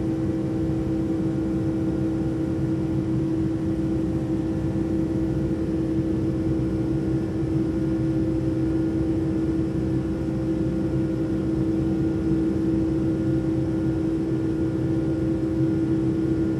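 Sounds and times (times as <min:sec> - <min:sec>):
airliner cabin ambience while rolling on the ground: 0:00.0 - 0:16.5.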